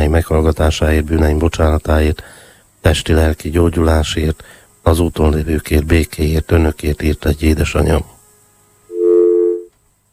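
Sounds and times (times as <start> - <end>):
speech: 0.1 - 8.1
telephone tone after a caller's phone line dropped: 8.9 - 9.7.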